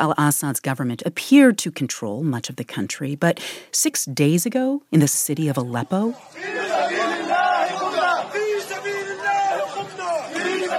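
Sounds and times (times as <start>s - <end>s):
speech: 0.0s - 6.9s
crowd of rebel soldiers cheering and chanting at the citadel of Aleppo: 5.7s - 10.7s.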